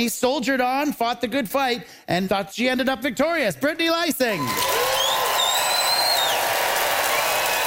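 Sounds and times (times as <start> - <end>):
speech: 0.0 - 4.9
audience applause: 4.4 - 7.6.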